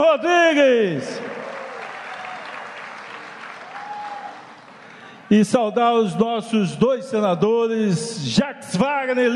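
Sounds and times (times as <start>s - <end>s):
speech: 0.2s - 1.3s, 5.3s - 9.3s
audience applause: 1.2s - 5.2s.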